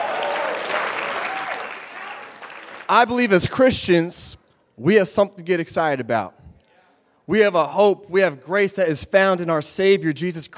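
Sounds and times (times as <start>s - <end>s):
audience clapping: 0.0s - 3.2s
speech: 2.9s - 6.4s, 7.3s - 10.5s.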